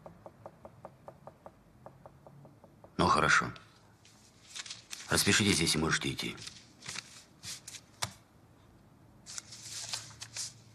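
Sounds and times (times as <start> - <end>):
pencil tapping on a table: 0.0 - 3.1
speech: 3.0 - 3.6, 5.1 - 6.6.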